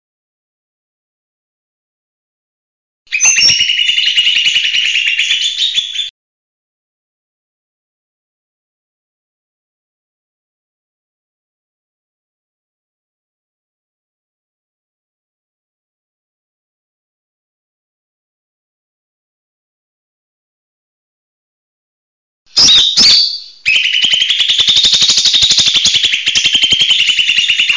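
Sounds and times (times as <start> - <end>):
leafbird whistled slurs: 3.1 - 6.1, 22.6 - 27.7.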